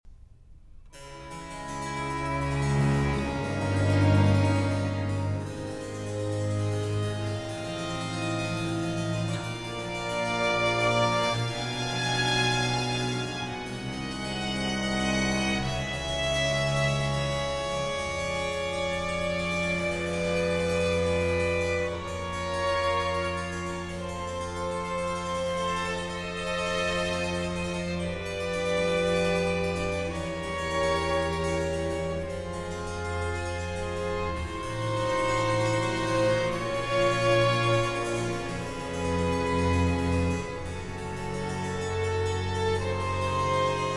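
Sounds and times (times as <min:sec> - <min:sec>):
violin concerto in D minor: 0:00.5 - 0:43.9.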